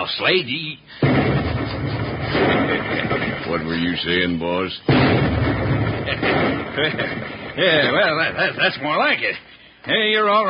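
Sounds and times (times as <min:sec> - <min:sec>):
speech: 0:00.0 - 0:10.4
explosion: 0:01.0 - 0:03.7, 0:04.9 - 0:07.8
laughter: 0:02.2 - 0:03.9, 0:06.0 - 0:09.4.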